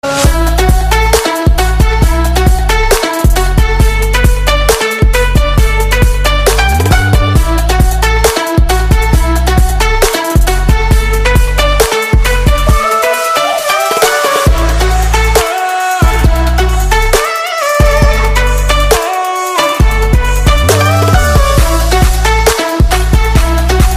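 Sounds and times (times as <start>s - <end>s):
love ringtone: 0.2s - 23.9s.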